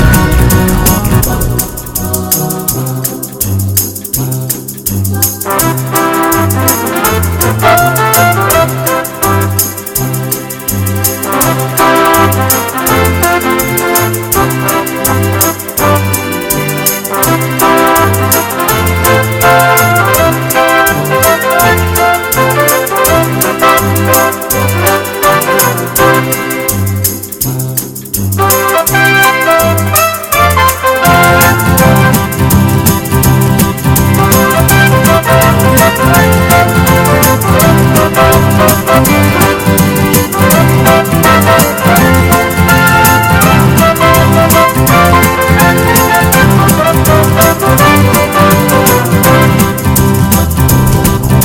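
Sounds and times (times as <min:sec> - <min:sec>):
hot jazz music: 0:00.0 - 0:51.4.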